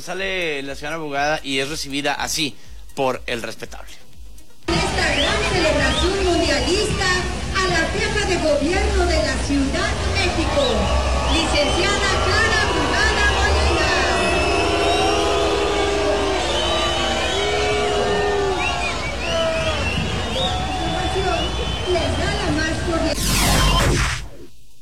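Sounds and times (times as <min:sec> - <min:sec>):
speech: 0:00.0 - 0:04.1, 0:05.0 - 0:12.5
crowd booing: 0:04.7 - 0:06.8, 0:09.6 - 0:24.2.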